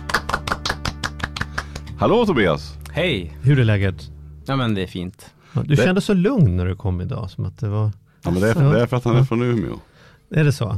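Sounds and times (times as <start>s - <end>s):
applause: 0.0s - 2.0s
speech: 2.0s - 10.7s.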